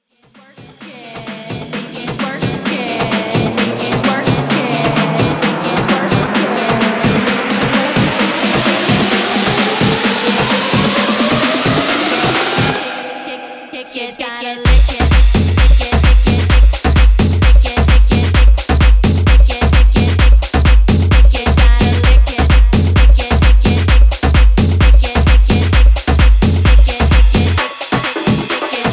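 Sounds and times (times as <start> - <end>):
guaracha remix music: 0.3 - 28.9.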